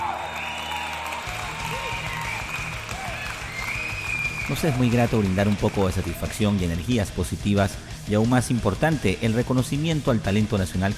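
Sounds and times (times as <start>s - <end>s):
applause: 0.0s - 6.6s
speech: 4.5s - 10.9s.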